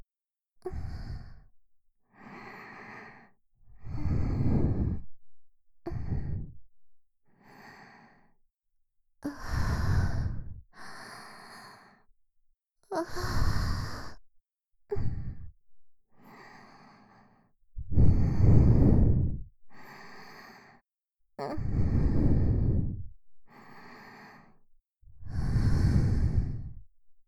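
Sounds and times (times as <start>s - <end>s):
sweet breathing loop: 0.7s - 1.5s, 2.2s - 5.2s, 5.9s - 6.6s, 7.3s - 8.4s, 9.2s - 12.1s, 13.0s - 14.2s, 16.2s - 20.8s, 21.6s - 24.6s, 25.2s - 26.9s.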